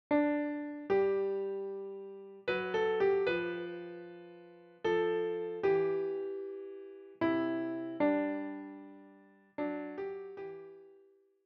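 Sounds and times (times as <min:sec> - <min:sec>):
piano: 0:00.0 - 0:11.2.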